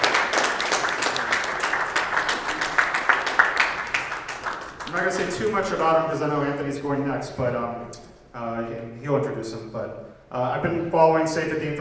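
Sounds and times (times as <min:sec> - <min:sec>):
crowd applauding: 0:00.0 - 0:06.0
speech: 0:05.0 - 0:11.7.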